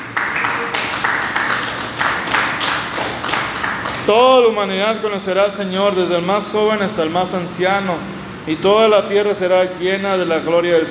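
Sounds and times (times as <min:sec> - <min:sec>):
crowd applauding: 0:00.0 - 0:04.3
speech: 0:04.1 - 0:10.8.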